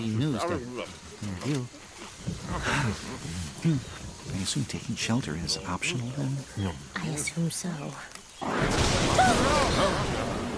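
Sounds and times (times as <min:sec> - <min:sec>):
speech: 0:00.0 - 0:01.8, 0:02.5 - 0:10.4
thunder crash: 0:08.4 - 0:10.5.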